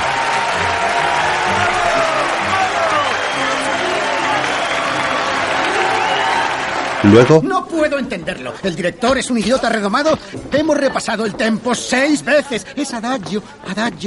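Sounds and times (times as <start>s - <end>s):
faint cheers: 0.0s - 7.4s
theater audience applause: 0.0s - 7.4s
speech: 7.0s - 14.0s.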